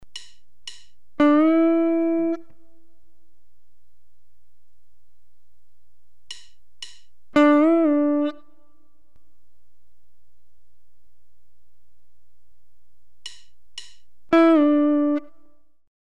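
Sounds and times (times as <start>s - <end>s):
guitar bends and releases: 0.1s - 2.7s, 6.3s - 8.6s, 13.2s - 15.4s.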